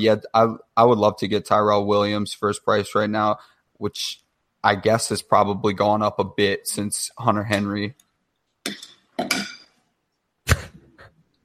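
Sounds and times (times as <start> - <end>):
speech: 0.0 - 8.0
spoon being slapped: 8.6 - 9.8.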